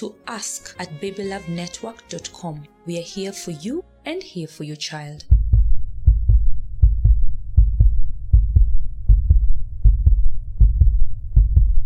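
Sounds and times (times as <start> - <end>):
speech: 0.0 - 5.4
baby's heartbeat: 5.3 - 11.8.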